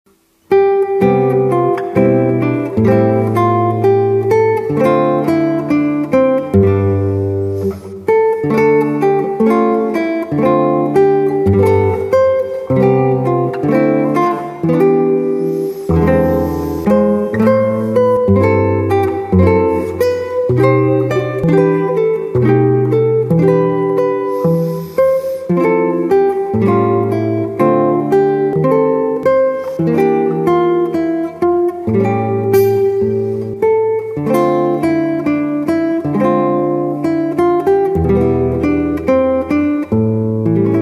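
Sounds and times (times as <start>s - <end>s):
guitar: 0.1s - 40.8s.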